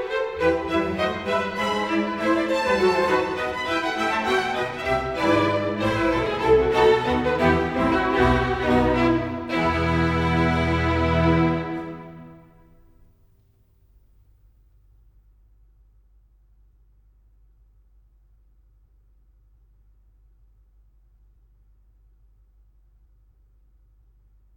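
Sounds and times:
concerto grosso in E major allegro: 0.0 - 12.6.

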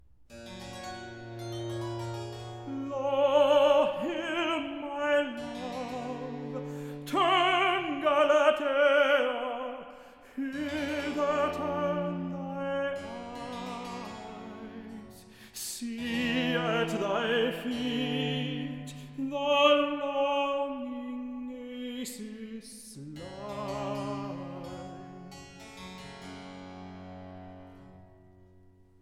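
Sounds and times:
person singing recitative: 2.7 - 25.2.

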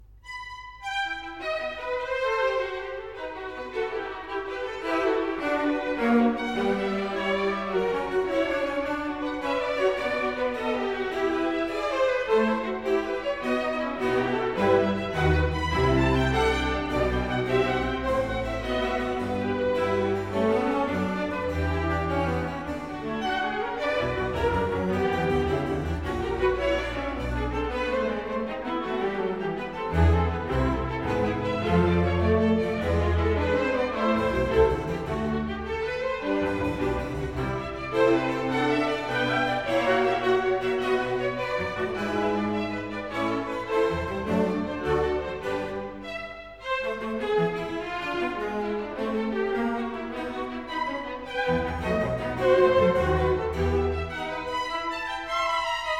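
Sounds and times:
concerto grosso andante in E major: 0.0 - 55.9.

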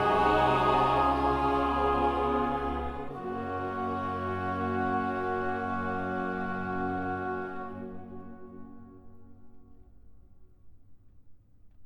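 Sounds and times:
choir singing: 0.0 - 8.8.

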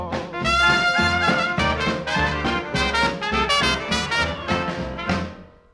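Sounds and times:
orchestra playing: 0.1 - 5.6.

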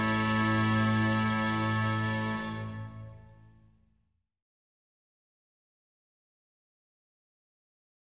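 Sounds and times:
organ concerto in F major: 0.0 - 3.4.

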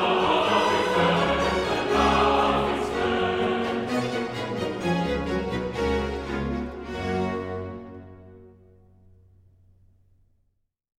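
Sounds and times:
chorus singing: 0.0 - 7.0.

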